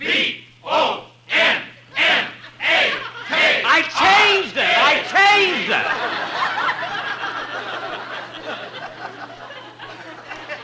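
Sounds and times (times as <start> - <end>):
voice imitating a roaring stadium crowd: 0.8 - 6.0
laughter: 1.9 - 10.6.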